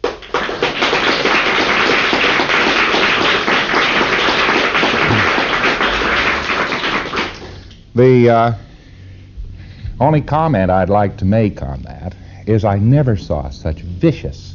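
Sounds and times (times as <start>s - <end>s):
audience applause: 0.0s - 7.7s
speech: 8.0s - 8.7s, 10.0s - 14.5s.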